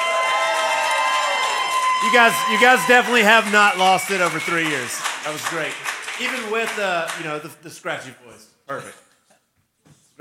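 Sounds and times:
audience applause: 0.0 - 7.5
speech: 2.0 - 9.0.

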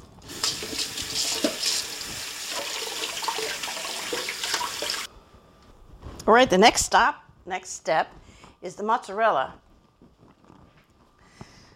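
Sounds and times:
running tap water while washing hands after handling sticky cooked rice: 0.2 - 5.1
speech: 6.3 - 9.6.

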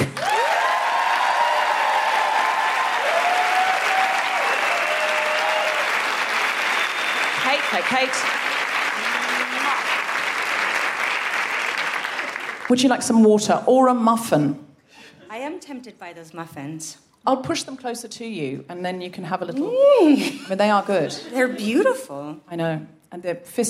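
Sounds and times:
audience applauding and cheering: 0.0 - 13.1
speech: 7.9 - 8.5, 12.7 - 14.7, 15.3 - 23.6.

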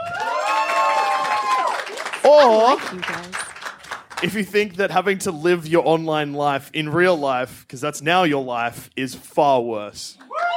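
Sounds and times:
faint clapping: 0.0 - 4.3
audience cheering: 0.0 - 4.5, 10.2 - 10.5
speech: 2.2 - 3.4, 4.2 - 10.3.

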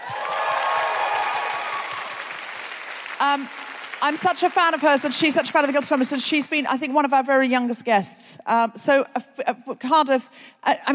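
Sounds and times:
audience applause: 0.0 - 5.8
speech: 3.2 - 10.9.

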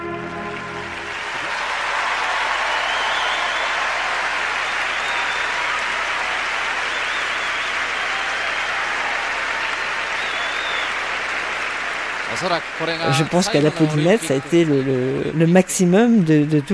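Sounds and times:
large crowd applauding and cheering: 0.0 - 16.7
whistles: 2.2 - 11.4
speech: 12.4 - 16.7.

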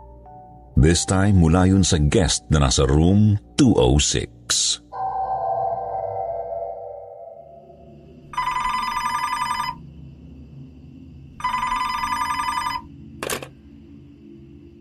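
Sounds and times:
speech: 0.8 - 4.8
fading tone: 4.9 - 8.6
telephone ringing: 8.3 - 9.8, 11.4 - 13.5.

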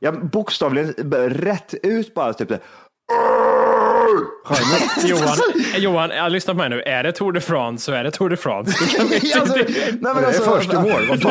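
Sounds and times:
speech: 0.0 - 11.3
man imitating an angry scream: 3.1 - 4.5
laughter: 4.5 - 6.0, 8.7 - 11.3.

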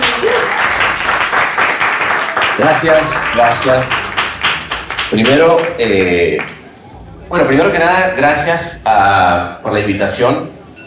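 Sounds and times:
audience applause: 0.0 - 6.6
speech: 2.6 - 4.0, 5.1 - 6.6, 7.3 - 10.5.

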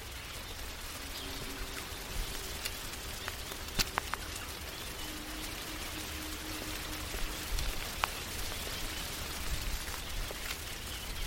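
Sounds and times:
birds: 0.0 - 11.2
faint low hum: 0.0 - 11.2
raindrops falling on a tree: 0.0 - 11.2.

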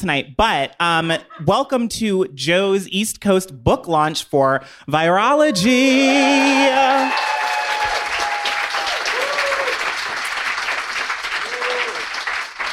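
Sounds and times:
speech: 0.0 - 7.4
cheers and whoops: 5.4 - 10.0, 11.4 - 12.2
audience applause at a book launch: 5.9 - 12.7.

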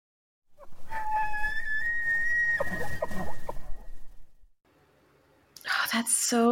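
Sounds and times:
elk bugling call: 0.6 - 4.3
speech: 6.0 - 6.5.

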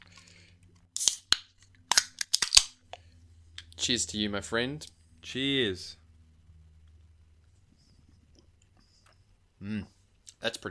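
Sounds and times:
beer cans cracking open: 1.0 - 2.8
speech: 3.8 - 6.0.

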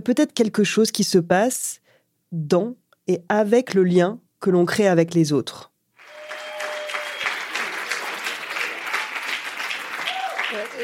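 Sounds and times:
speech: 0.0 - 5.7
audience applause: 6.0 - 10.8.

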